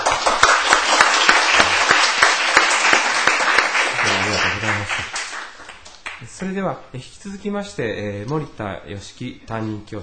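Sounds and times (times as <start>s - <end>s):
audience applause at a Japanese meeting after a motion passes: 0.0s - 6.2s
speech: 6.4s - 10.0s.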